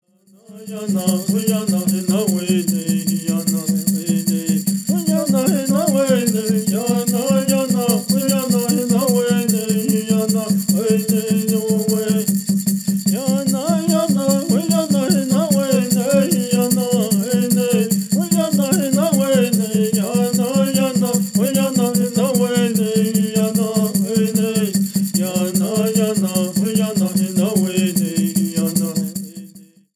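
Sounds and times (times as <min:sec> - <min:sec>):
person singing: 0:00.4 - 0:12.3, 0:13.1 - 0:29.0.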